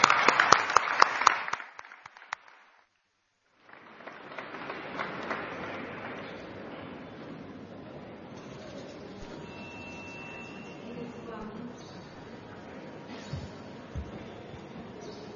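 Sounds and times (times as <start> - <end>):
audience applause: 0.0 - 6.7.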